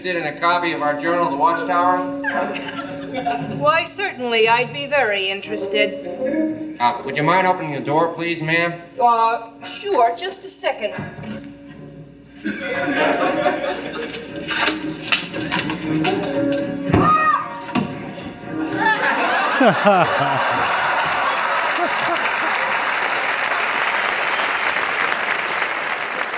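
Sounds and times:
speech: 0.0 - 11.5, 12.4 - 17.1, 19.2 - 20.6
studio audience laughing: 2.2 - 3.6, 12.4 - 14.3, 18.1 - 23.2
studio audience applause: 19.2 - 26.3.

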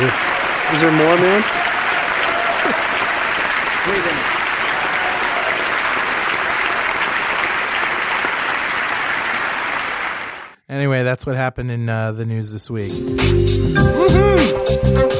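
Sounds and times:
speech: 0.0 - 1.6, 3.9 - 4.4, 10.7 - 15.1
crowd applause: 0.0 - 10.6.

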